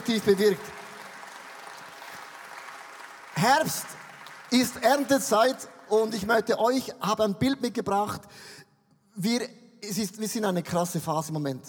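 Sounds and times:
audience applause: 0:00.0 - 0:06.1
speech: 0:00.1 - 0:00.8, 0:03.4 - 0:08.6, 0:09.2 - 0:11.6.

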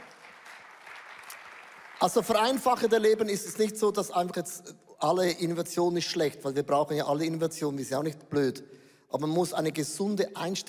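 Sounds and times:
audience applause: 0:00.0 - 0:02.6
speech: 0:02.0 - 0:10.6.

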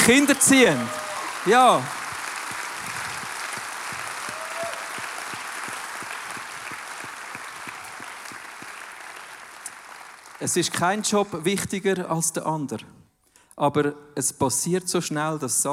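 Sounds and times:
speech: 0:00.0 - 0:02.0, 0:10.4 - 0:13.0, 0:13.6 - 0:15.7
audience applause: 0:00.0 - 0:11.1.

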